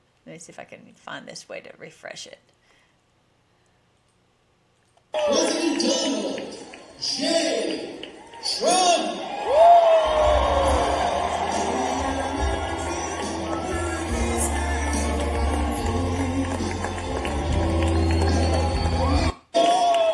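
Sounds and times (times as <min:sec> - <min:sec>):
speech: 0:00.2 - 0:02.6
large rally crowd cheering and shouting: 0:05.2 - 0:06.4, 0:07.0 - 0:20.1.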